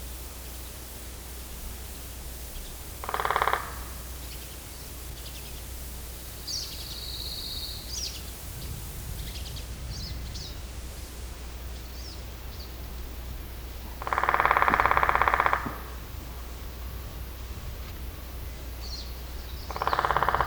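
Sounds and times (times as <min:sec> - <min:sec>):
woodpecker rattling: 0:02.4 - 0:05.9, 0:13.9 - 0:16.2, 0:19.6 - 0:20.4.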